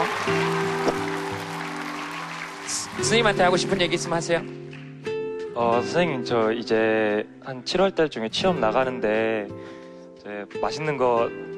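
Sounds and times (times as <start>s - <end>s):
audience applause: 0.0s - 4.9s
speech: 3.0s - 4.8s, 5.6s - 11.5s.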